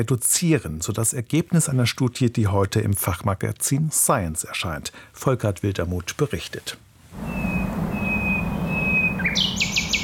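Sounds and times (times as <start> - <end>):
speech: 0.0 - 7.4
common nightingale singing: 7.2 - 10.0.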